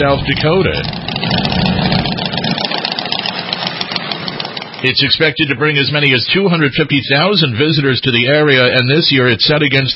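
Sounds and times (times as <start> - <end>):
speech: 0.0 - 1.4, 4.8 - 9.9
motorcycle engines idling and revving: 0.0 - 6.2.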